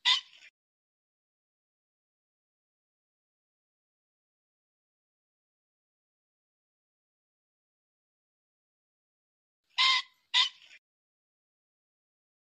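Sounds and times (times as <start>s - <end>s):
pheasant squawking: 0.0s - 0.5s, 9.7s - 10.8s.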